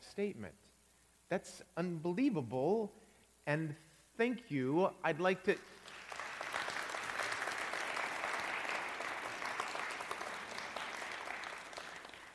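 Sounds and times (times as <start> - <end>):
speech: 0.2 - 0.6, 1.3 - 5.8
audience applause: 5.8 - 12.3.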